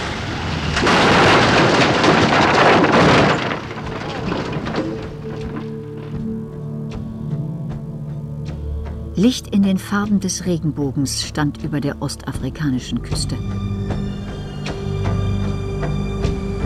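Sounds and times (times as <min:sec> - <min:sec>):
burning aircraft crash-landing impact on the East African coast: 0:00.0 - 0:06.2
quieter rumbling tail with a steady low hum: 0:00.0 - 0:16.6
speech: 0:09.2 - 0:13.7.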